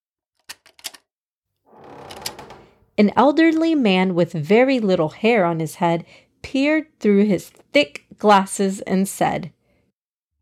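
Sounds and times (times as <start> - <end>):
door locks clicking and rattling: 1.7 - 3.0
speech: 3.0 - 9.6.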